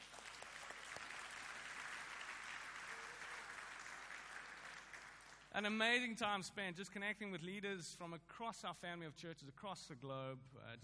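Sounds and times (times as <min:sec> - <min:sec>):
round of applause: 0:00.0 - 0:05.6
speech: 0:05.5 - 0:10.8.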